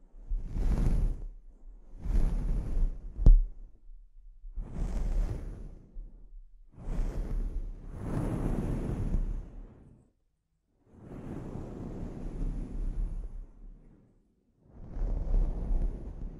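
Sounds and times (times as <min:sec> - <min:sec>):
scalp treatment swishing and rubbing strokes: 0:00.0 - 0:10.0, 0:11.0 - 0:14.2, 0:14.8 - 0:16.3.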